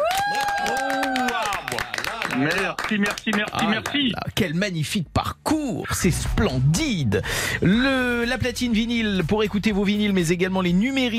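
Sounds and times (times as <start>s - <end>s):
applause: 0.0s - 4.2s
speech: 2.4s - 11.1s.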